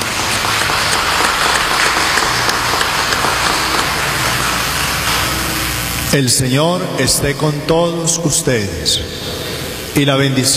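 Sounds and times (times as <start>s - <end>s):
audience applause: 0.0s - 5.8s
speech: 6.1s - 9.4s, 10.0s - 10.5s.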